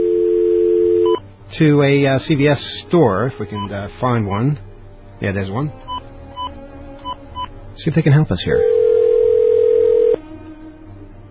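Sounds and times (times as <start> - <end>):
regular telephone dial tone: 0.0 - 1.2, 8.6 - 10.2
speech: 1.5 - 5.9, 7.8 - 8.7.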